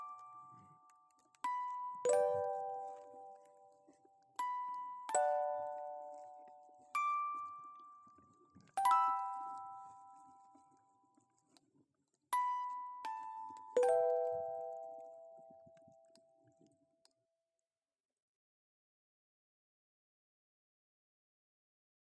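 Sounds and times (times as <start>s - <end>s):
music box melodies: 0.0s - 11.6s, 12.3s - 16.4s.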